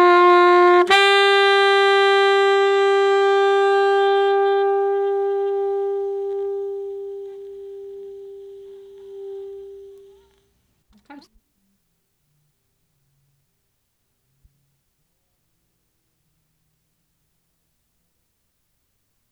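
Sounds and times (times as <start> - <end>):
saxophone: 0.0 - 10.4.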